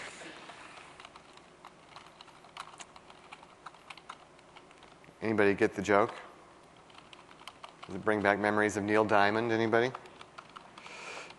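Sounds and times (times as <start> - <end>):
typing Classic ASP code on a computer keyboard: 1.0 - 5.0, 6.8 - 8.6, 9.8 - 11.3
speech: 5.3 - 6.3, 7.9 - 10.0.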